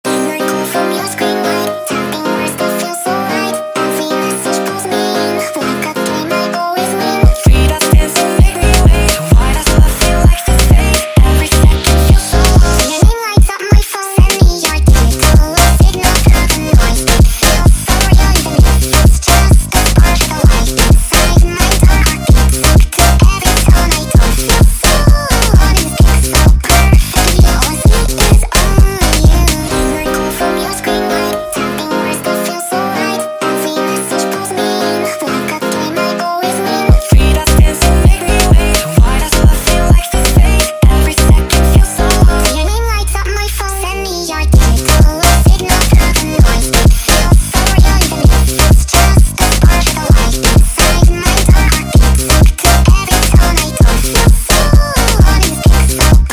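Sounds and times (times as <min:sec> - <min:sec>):
sped up funk music: 0:00.1 - 0:43.5, 0:44.1 - 0:56.3.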